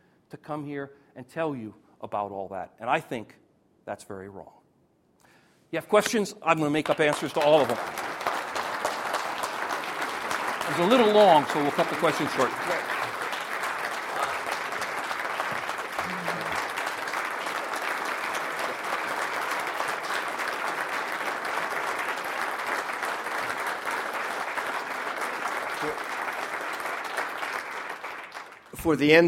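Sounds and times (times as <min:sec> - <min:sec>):
speech: 0:00.3 - 0:04.6, 0:05.7 - 0:08.0, 0:10.7 - 0:12.9, 0:28.9 - 0:29.2
audience applause in a standing ovation: 0:06.5 - 0:29.0.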